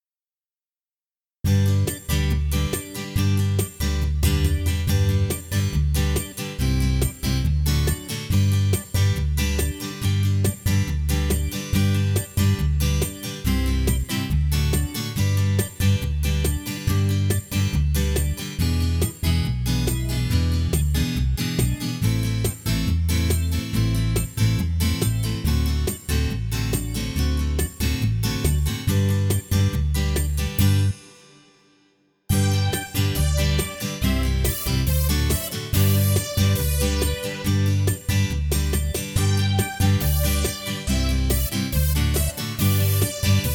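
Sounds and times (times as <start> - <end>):
backing track: 1.5 - 31.2, 32.3 - 43.5.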